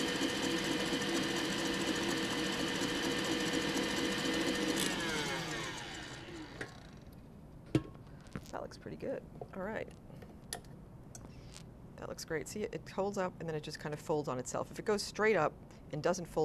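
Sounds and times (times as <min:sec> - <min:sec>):
electric mixer whirring, beating a mixture to soft peaks: 0:00.0 - 0:07.1
speech: 0:08.7 - 0:10.0, 0:12.0 - 0:16.4.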